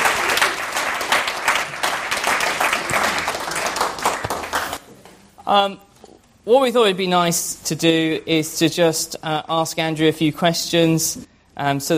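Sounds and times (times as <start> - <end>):
audience applause: 0.0 - 4.8
speech: 5.5 - 11.9.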